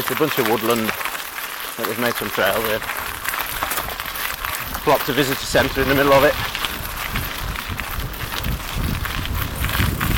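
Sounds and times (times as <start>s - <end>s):
mountain bike tyres on crunchy gravel: 0.0s - 10.1s
speech: 0.1s - 1.2s, 1.8s - 3.1s, 4.8s - 6.5s.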